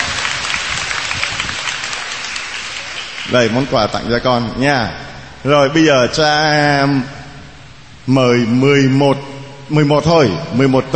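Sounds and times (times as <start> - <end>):
round of applause from a church audience: 0.0 - 4.0
speech: 3.3 - 7.2, 8.0 - 10.9.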